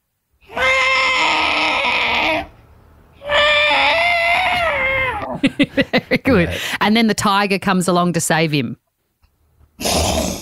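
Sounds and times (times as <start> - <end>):
person imitating elephant trumpeting: 0.4 - 2.6, 3.2 - 5.4
speech: 5.4 - 8.8, 9.8 - 10.2.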